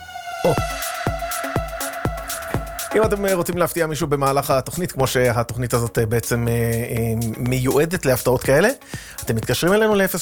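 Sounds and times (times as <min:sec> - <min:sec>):
siren sound effect: 0:00.0 - 0:03.0
speech: 0:00.5 - 0:00.8, 0:02.9 - 0:10.2.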